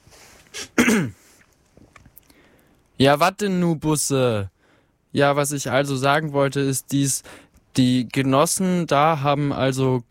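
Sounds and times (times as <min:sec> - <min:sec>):
throat clearing: 0:00.5 - 0:01.2
speech: 0:00.9 - 0:01.2, 0:03.0 - 0:04.5, 0:05.1 - 0:10.0.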